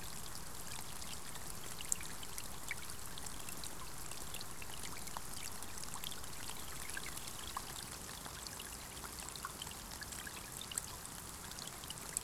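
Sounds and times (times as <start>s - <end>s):
light rain on a puddle: 0.0s - 12.2s.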